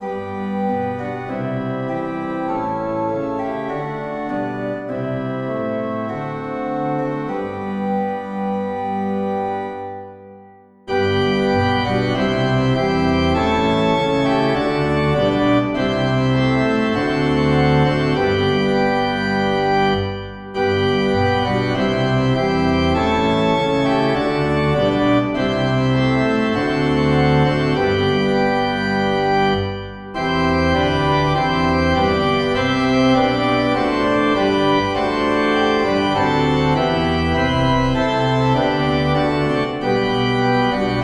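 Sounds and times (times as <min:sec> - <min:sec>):
organ: 0:00.0 - 0:41.0.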